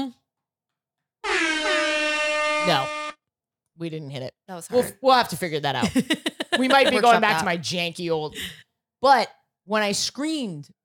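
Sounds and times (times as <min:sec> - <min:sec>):
air horn from a soundboard: 0:01.2 - 0:03.2
speech: 0:02.6 - 0:03.0, 0:03.8 - 0:10.8
laughter: 0:05.8 - 0:07.5.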